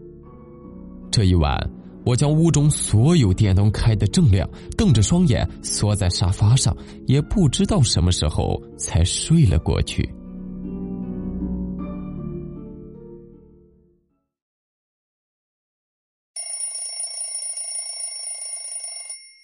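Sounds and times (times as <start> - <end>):
speech: 1.1 - 10.2
alarm clock ringing in the morning: 16.4 - 19.4.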